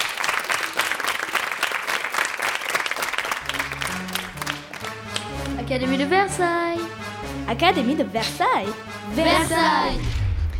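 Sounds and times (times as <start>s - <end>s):
audience applauding loudly: 0.0s - 5.6s
speech: 5.7s - 6.8s, 7.5s - 10.2s.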